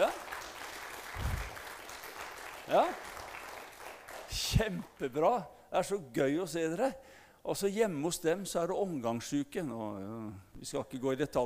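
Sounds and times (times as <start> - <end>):
small crowd applauding: 0.0 - 5.0
speech: 2.7 - 3.1, 4.5 - 11.4.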